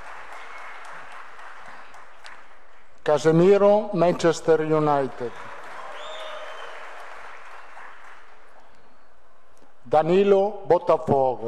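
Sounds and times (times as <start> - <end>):
audience applause for a named player: 0.0 - 2.6, 5.2 - 8.6
speech: 3.1 - 5.5, 9.9 - 11.4.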